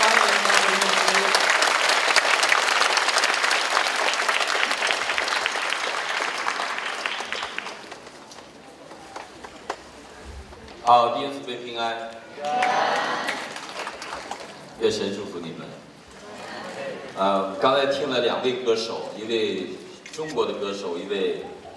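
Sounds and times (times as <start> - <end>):
warm applause from audience: 0.0 - 10.8, 12.4 - 14.8
speech: 10.9 - 12.8, 14.8 - 15.7, 17.2 - 21.5.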